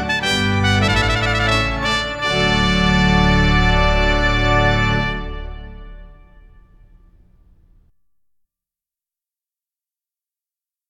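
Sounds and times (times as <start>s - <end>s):
wedding trumpet tune: 0.0s - 7.0s.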